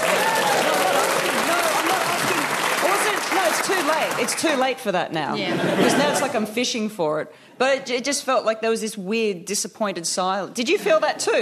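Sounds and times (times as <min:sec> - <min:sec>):
audience applause: 0:00.0 - 0:04.7
speech: 0:03.9 - 0:11.4
laughter: 0:05.4 - 0:06.5.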